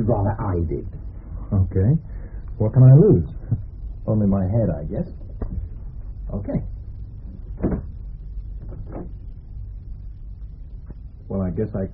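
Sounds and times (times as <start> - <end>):
speech: 0.0 - 5.2, 6.3 - 6.7, 8.9 - 9.2, 11.3 - 11.9
door being opened: 7.5 - 8.0, 8.6 - 9.3.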